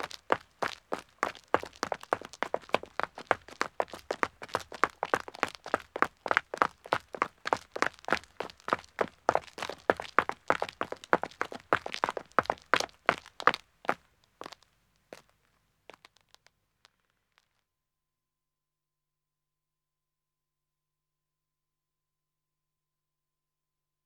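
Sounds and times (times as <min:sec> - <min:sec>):
two men running footsteps on a country road: 0:00.0 - 0:15.3.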